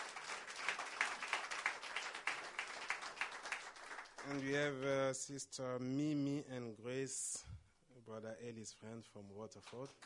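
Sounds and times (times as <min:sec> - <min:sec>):
audience clapping for visitors: 0:00.0 - 0:05.0, 0:09.5 - 0:10.0
speech: 0:04.2 - 0:10.0.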